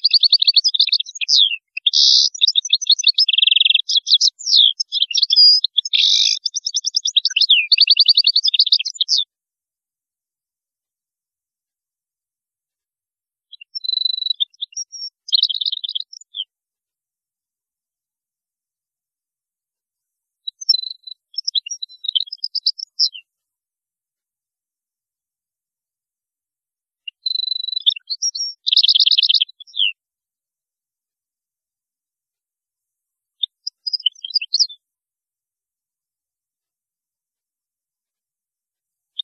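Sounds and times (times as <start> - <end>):
European goldfinch song: 0.0 - 9.3, 13.5 - 16.5, 20.5 - 23.2, 27.1 - 30.0, 33.4 - 34.8.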